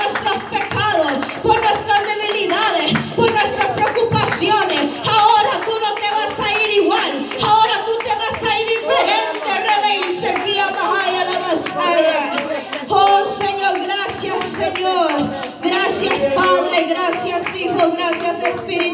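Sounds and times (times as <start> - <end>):
audience applause: 0.0 - 18.9.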